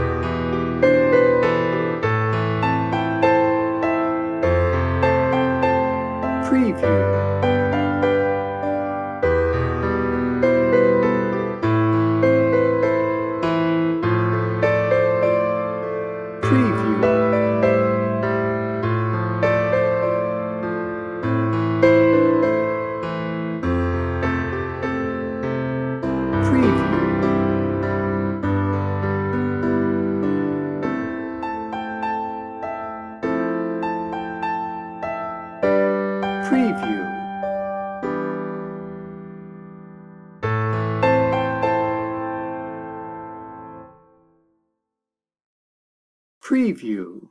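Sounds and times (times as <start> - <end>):
warm reflective orchestral piano music, piano only: 0.0 - 44.1.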